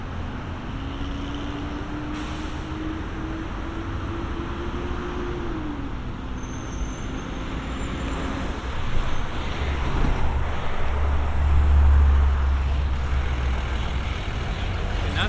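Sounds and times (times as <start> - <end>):
traffic ambience recorded binaurally: 0.0 - 15.2.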